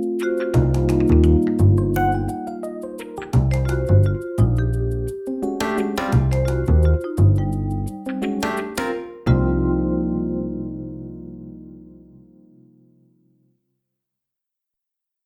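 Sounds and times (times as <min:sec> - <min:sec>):
acid funk backing track: 0:00.0 - 0:09.6.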